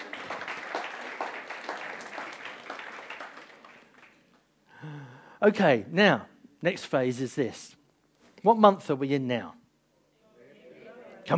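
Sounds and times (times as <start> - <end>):
crowd clapping: 0.0 - 4.4
speech: 5.4 - 7.8, 8.4 - 9.6.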